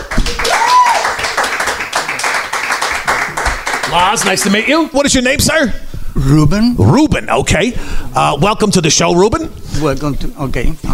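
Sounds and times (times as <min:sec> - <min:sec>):
audience clapping for a volunteer coming on stage at a live show: 0:00.0 - 0:04.8
speech: 0:03.9 - 0:10.9.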